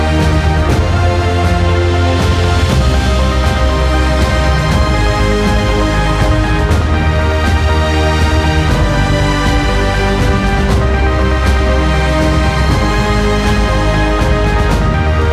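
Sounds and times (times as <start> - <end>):
strong epic orchestral music with hybrid engine: 0.0 - 15.3.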